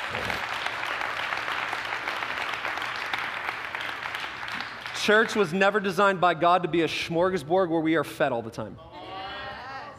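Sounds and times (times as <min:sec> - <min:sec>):
crowd clapping: 0:00.0 - 0:06.0
speech: 0:05.0 - 0:08.9.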